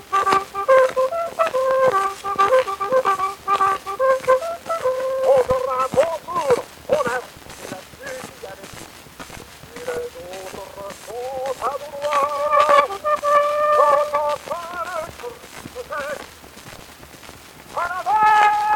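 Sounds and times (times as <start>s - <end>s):
bugle: 0.0s - 7.3s, 11.2s - 16.3s, 17.8s - 18.7s.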